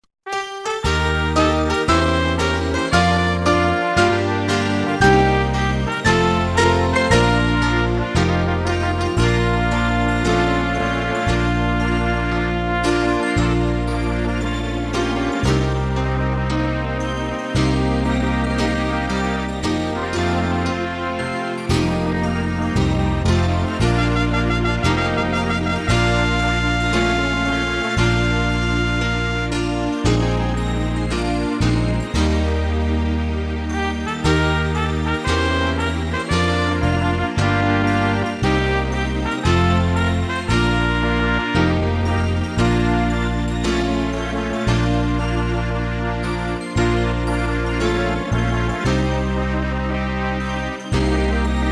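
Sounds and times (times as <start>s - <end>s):
adventurous anthem music track: 0.3s - 51.7s.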